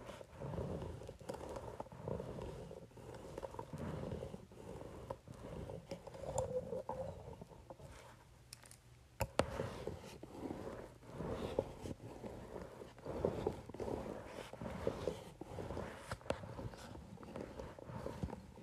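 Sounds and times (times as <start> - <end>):
facial roller rolling over paper: 0.0 - 8.1, 9.2 - 18.6.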